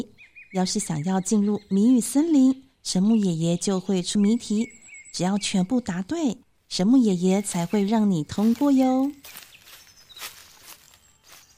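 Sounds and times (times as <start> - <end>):
speech: 0.5 - 9.4
footsteps approaching in a riddle forest: 7.4 - 11.5.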